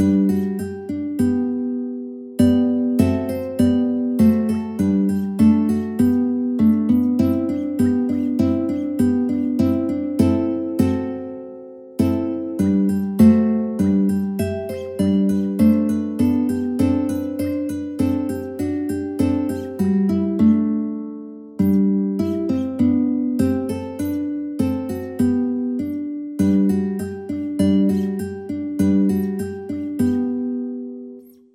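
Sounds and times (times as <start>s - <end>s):
mandolin playing a gavotte: 0.0s - 31.2s.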